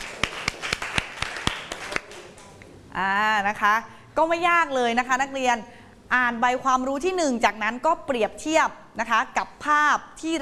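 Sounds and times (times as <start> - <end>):
classroom applause with hand claps from a few people: 0.0 - 2.6
speech: 3.0 - 10.4.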